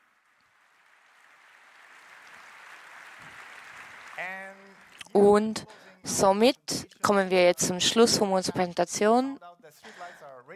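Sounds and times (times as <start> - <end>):
audience applause: 0.0 - 5.0
speech: 4.2 - 10.5.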